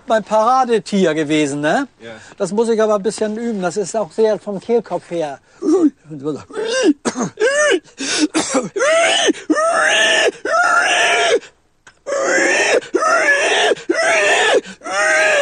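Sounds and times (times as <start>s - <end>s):
speech: 0.1s - 15.3s
person imitating a dying pig: 8.8s - 11.4s, 12.0s - 15.3s.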